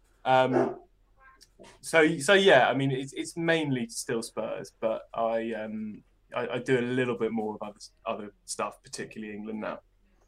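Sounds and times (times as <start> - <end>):
speech: 0.2 - 0.8, 1.6 - 9.9
dog barking in the background: 0.5 - 0.8.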